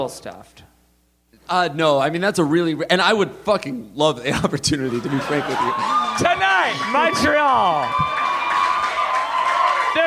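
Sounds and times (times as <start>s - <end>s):
speech: 0.0s - 0.7s, 1.5s - 8.2s
laughter: 4.3s - 7.2s
crowd of women screaming and cheering: 5.0s - 10.0s.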